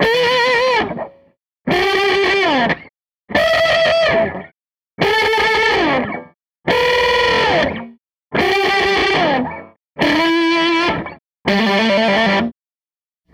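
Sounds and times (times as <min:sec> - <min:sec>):
SG electric guitar loop: 0:00.0 - 0:12.5.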